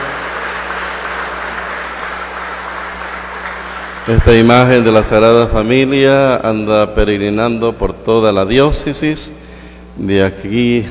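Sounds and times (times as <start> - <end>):
applause: 0.0 - 5.0
speech: 4.0 - 9.4, 10.0 - 10.8.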